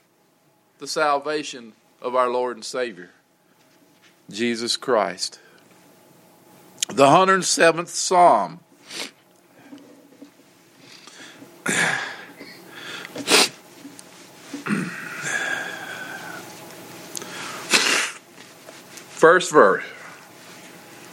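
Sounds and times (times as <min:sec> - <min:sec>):
speech: 0:00.8 - 0:03.2, 0:04.3 - 0:05.4, 0:06.9 - 0:09.1, 0:19.2 - 0:20.0
sniffling and breathy noise: 0:10.8 - 0:13.6, 0:14.5 - 0:16.4, 0:17.2 - 0:18.2
allergy sufferer sneezing: 0:11.6 - 0:13.6, 0:14.6 - 0:16.4, 0:17.6 - 0:18.2.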